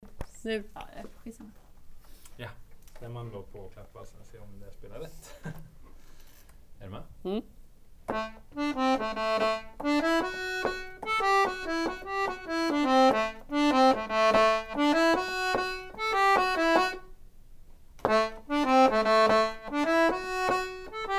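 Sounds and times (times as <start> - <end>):
folk waltz part: 8.1 - 17.2, 18.0 - 21.1.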